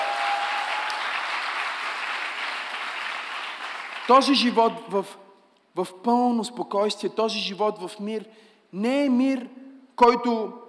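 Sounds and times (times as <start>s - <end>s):
audience applause: 0.0s - 4.2s
speech: 4.1s - 5.2s, 5.8s - 10.6s.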